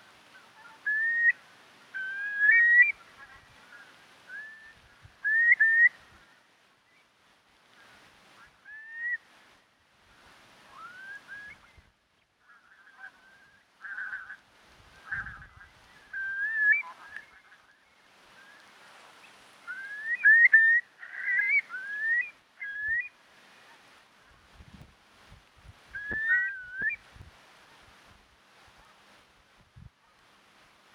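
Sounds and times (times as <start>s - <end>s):
Numenius arquata arquata calling: 0.0s - 6.5s, 7.7s - 9.4s, 10.7s - 24.4s, 25.9s - 27.1s.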